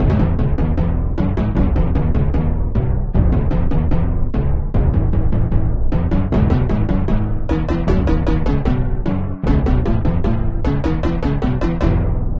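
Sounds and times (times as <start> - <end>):
drum: 0.0 - 12.3.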